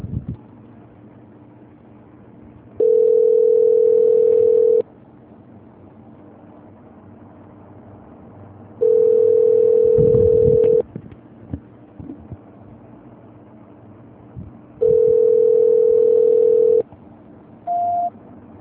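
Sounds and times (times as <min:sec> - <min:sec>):
telephone call-transfer tone beeps: 0:02.8 - 0:04.8, 0:08.8 - 0:10.8, 0:14.8 - 0:16.8, 0:17.7 - 0:18.1.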